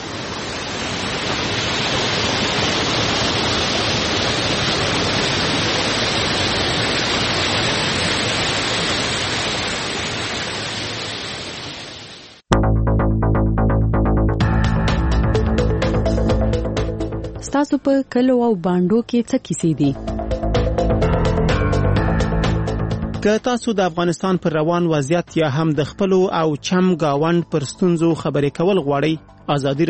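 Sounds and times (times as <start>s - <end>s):
flowing water of the Mazar Baba spring in Uruzgan, Afghanistan: 0.0s - 12.4s
music: 12.5s - 29.8s
speech: 17.8s - 20.1s, 23.2s - 29.8s.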